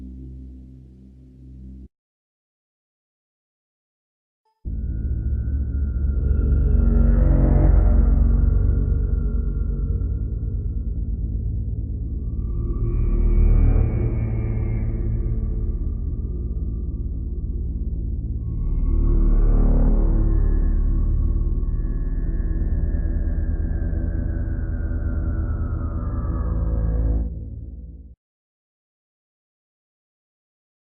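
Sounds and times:
ambience: 4.7s - 28.2s.

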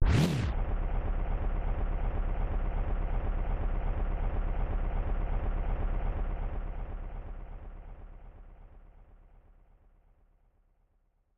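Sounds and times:
engine: 0.0s - 11.3s.

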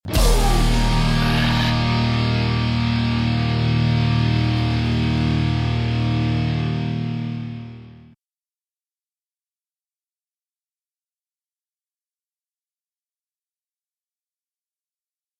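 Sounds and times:
boss win victory music: 0.1s - 7.9s.

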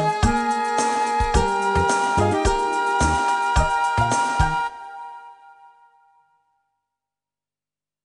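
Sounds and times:
background music: 0.0s - 6.2s.

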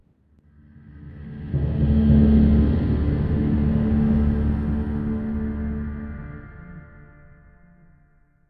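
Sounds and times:
progress stinger: 0.5s - 7.2s.

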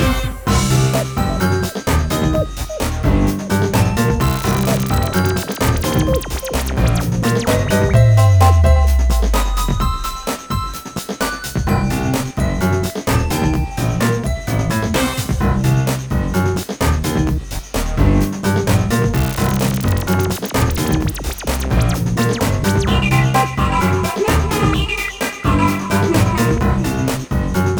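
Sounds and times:
menu theme loop: 0.0s - 17.4s, 18.0s - 27.7s.

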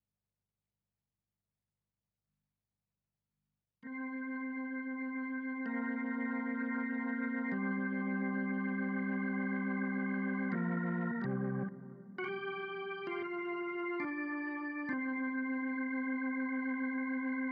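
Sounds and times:
synths and keys: 3.8s - 17.5s.

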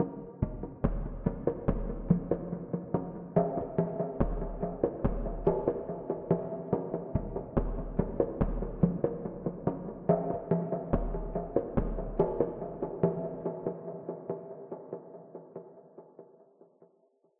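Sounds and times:
djembe: 0.0s - 15.9s.

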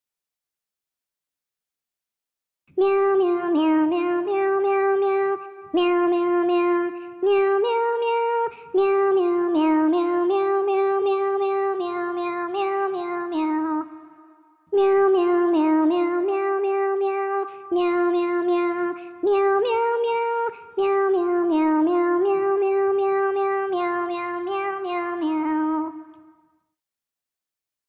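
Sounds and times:
person singing a nursery rhyme: 2.8s - 26.2s.

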